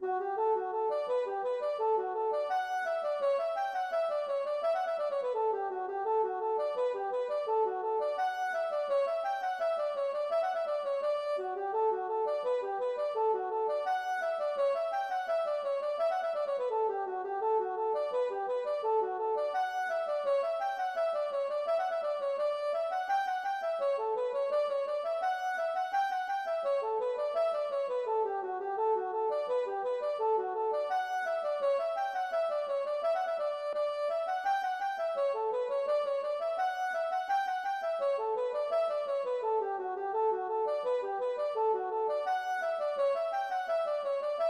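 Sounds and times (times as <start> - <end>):
hornpipe tune: 0.2 - 44.4.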